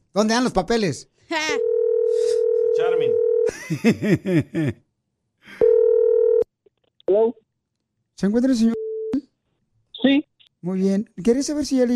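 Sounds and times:
speech: 0.2s - 1.7s, 2.8s - 4.8s, 7.1s - 7.4s, 8.2s - 8.8s, 10.0s - 11.9s
steady electronic phone tone: 1.6s - 3.5s, 5.6s - 6.4s
laughter: 3.5s - 4.8s.

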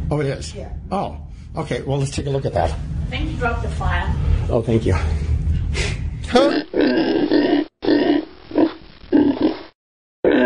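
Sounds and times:
speech: 0.1s - 7.4s
pig grunting: 6.3s - 9.6s.

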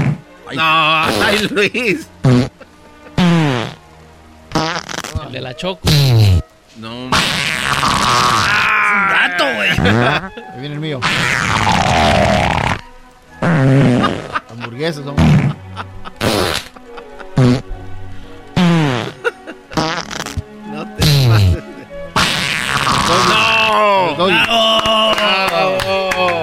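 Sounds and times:
fart sounds: 0.0s - 0.2s, 1.0s - 1.4s, 2.2s - 2.6s, 3.2s - 3.8s, 4.5s - 6.4s, 7.1s - 8.7s, 9.7s - 10.2s, 11.0s - 12.8s, 13.4s - 14.5s, 15.2s - 15.6s, 16.2s - 16.8s, 17.4s - 17.7s, 18.6s - 21.6s, 22.2s - 23.7s
speech: 0.5s - 2.4s, 5.3s - 12.5s, 14.5s - 16.0s
laughter: 0.6s - 3.4s, 8.2s - 10.6s, 13.5s - 17.6s, 18.8s - 22.1s, 22.9s - 26.4s.

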